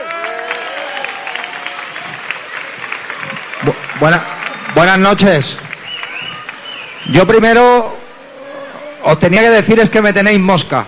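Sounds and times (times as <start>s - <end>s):
audience applause: 0.0s - 7.6s
speech: 4.0s - 5.6s, 7.0s - 8.0s, 9.0s - 10.8s.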